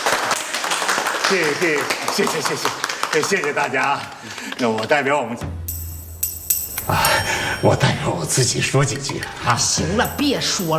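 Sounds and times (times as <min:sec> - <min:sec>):
warm welcoming applause: 0:00.0 - 0:05.0
speech: 0:01.3 - 0:05.6, 0:06.9 - 0:10.7.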